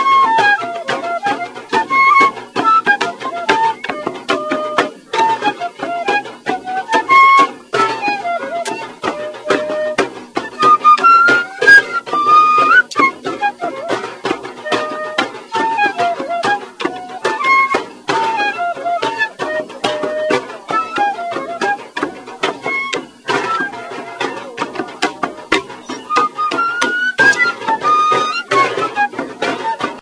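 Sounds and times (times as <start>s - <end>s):
drums: 0.0s - 29.9s
flute: 0.0s - 29.9s.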